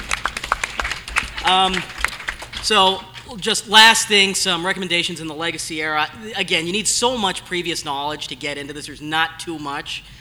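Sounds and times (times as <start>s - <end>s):
audience applause: 0.0s - 3.3s
speech: 1.4s - 2.0s, 2.6s - 10.1s.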